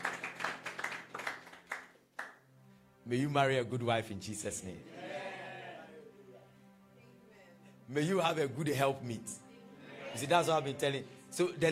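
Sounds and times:
audience applause: 0.0s - 2.3s
speech: 3.1s - 5.0s, 7.9s - 9.4s, 10.1s - 11.7s.

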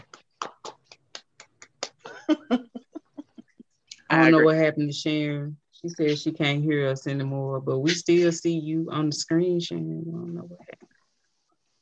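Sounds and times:
people clapping hands: 0.0s - 2.6s
laughter and voices: 1.7s - 4.6s, 7.8s - 8.4s
speech: 2.3s - 2.7s, 4.2s - 10.9s.

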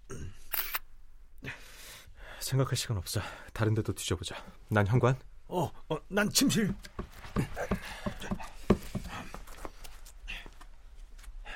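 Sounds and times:
camera shutter clicking photographing gas cylinders on a balcony: 0.5s - 0.8s
speech: 2.5s - 7.6s.

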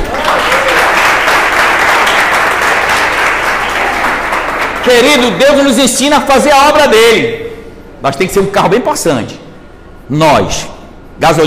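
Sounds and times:
audience applause: 0.0s - 5.4s
speech: 4.8s - 7.4s, 8.0s - 9.4s, 10.1s - 11.4s.

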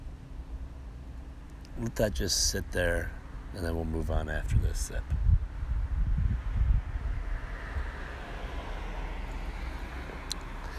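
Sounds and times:
traffic rolling past outside: 0.0s - 10.7s
speech: 1.8s - 5.3s.

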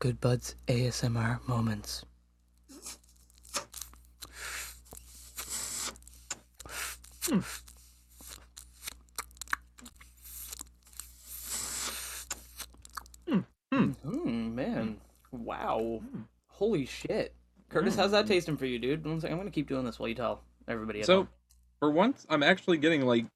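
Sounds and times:
speech: 0.0s - 2.1s, 7.3s - 7.7s, 13.3s - 23.3s
papery crackles of unlit joints: 2.7s - 13.2s
dry draws pulled through unlit joints: 4.2s - 8.9s, 10.1s - 12.7s.

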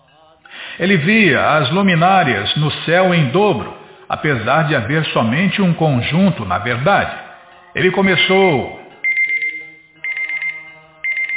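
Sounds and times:
speech: 0.8s - 8.8s
alarm clock ringing: 8.0s - 11.3s.

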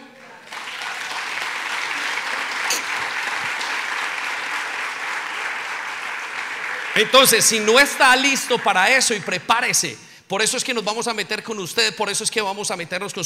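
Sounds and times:
audience applause: 0.0s - 9.3s
speech: 7.0s - 13.2s.

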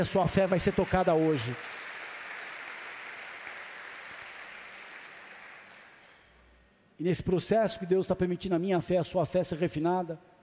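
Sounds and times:
speech: 0.0s - 1.8s, 7.0s - 10.3s
audience applauding: 0.0s - 6.4s.

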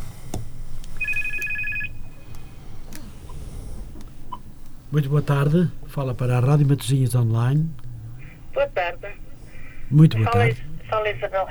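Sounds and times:
low steady hum: 0.0s - 11.4s
telephone ringing with an incoming call to a radio show: 1.0s - 2.4s, 10.2s - 11.4s
speech: 4.9s - 7.8s, 8.6s - 9.2s, 9.9s - 11.4s.

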